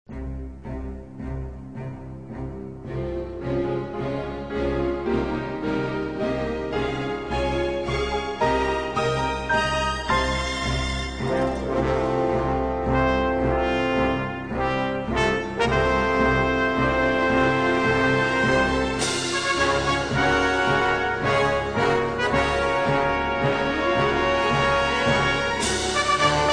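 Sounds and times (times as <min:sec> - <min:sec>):
orchestral strings: 0:00.1 - 0:26.5.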